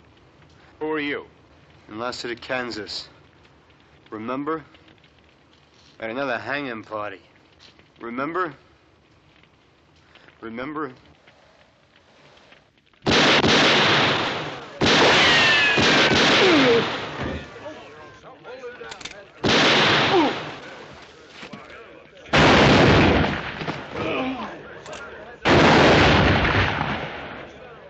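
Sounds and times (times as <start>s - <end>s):
speech: 0.8s - 3.2s, 4.1s - 4.8s, 6.0s - 7.3s, 8.0s - 8.6s, 10.4s - 11.1s
gunshots in a Western shootout at a hanging party: 13.0s - 17.8s, 19.0s - 21.0s, 22.3s - 27.8s.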